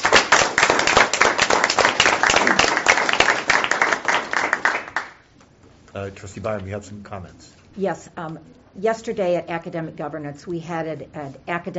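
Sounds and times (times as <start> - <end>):
hands clapping: 0.0 - 5.2
speech: 6.0 - 11.7.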